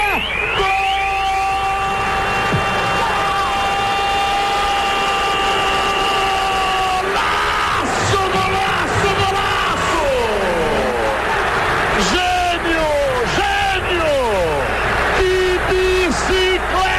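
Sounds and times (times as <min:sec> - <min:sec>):
stadium crowd roaring after goal: 0:00.0 - 0:16.9.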